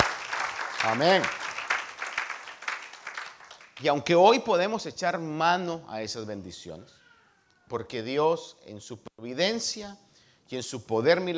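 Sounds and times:
audience applause: 0.0 - 3.9
speech: 0.8 - 1.4, 3.8 - 7.0, 7.7 - 11.3.

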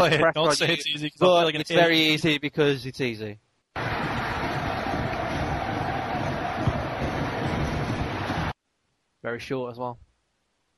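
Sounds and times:
speech: 0.0 - 3.4, 9.2 - 10.1
crowd cheering: 3.8 - 8.6.

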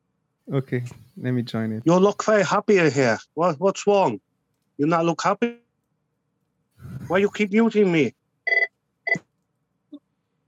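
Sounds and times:
speech: 0.5 - 5.6, 6.8 - 8.2
phone ringing in the background: 8.5 - 9.2.

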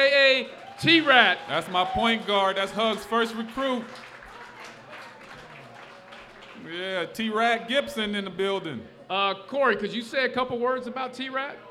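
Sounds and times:
audience applause for a guest: 0.0 - 7.4
speech: 0.8 - 4.1, 6.6 - 11.6.

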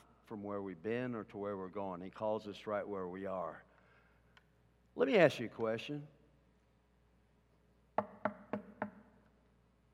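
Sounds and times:
speech: 0.3 - 3.7, 5.0 - 6.2
knocks on a hard surface: 8.0 - 9.0.

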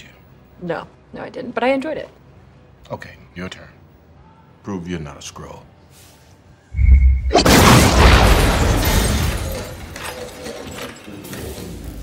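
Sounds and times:
speech: 0.6 - 2.2, 2.8 - 3.8, 4.6 - 5.7
sci-fi photon blast energy effect: 6.8 - 9.0.

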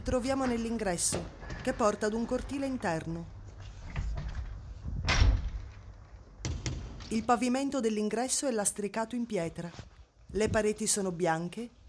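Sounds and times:
speech: 0.0 - 3.4, 7.1 - 11.8
large heavy front door closing at the entrance of a Brussels gallery: 3.9 - 7.0.

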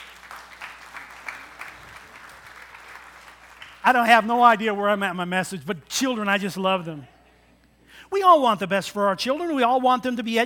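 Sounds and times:
audience applause: 0.0 - 3.8
speech: 3.8 - 7.1, 8.1 - 10.4.

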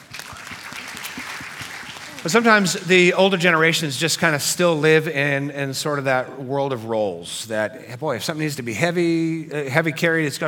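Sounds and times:
applause: 0.0 - 2.8
speech: 2.2 - 10.4.

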